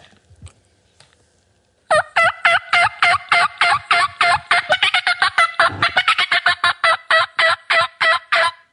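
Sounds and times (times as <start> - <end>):
turkey game call blown in rapid yelps: 1.9 - 8.7.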